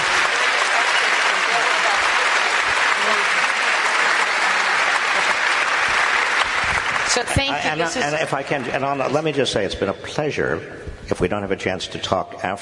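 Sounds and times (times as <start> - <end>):
audience applause: 0.0 - 9.6
speech: 7.2 - 12.6.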